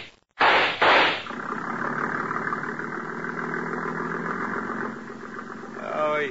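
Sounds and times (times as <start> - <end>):
speedboat engine pulling away from the dock: 1.2 - 6.2.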